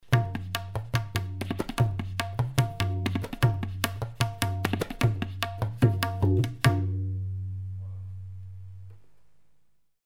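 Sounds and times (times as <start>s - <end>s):
tabla solo: 0.0s - 7.9s.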